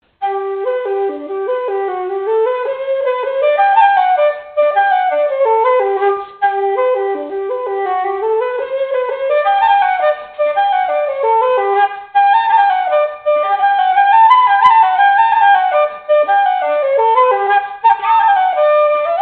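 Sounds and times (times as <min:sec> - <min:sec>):
flute playing traditional Irish music: 0:00.0 - 0:19.2.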